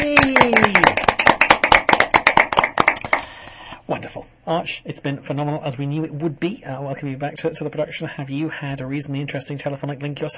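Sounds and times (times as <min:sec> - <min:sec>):
audience applause: 0:00.0 - 0:03.3
speech: 0:04.5 - 0:10.3.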